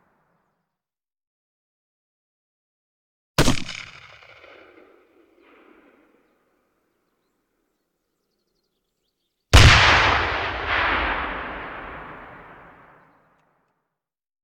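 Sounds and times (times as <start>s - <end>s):
artillery grenade launcher: 9.6s - 12.8s.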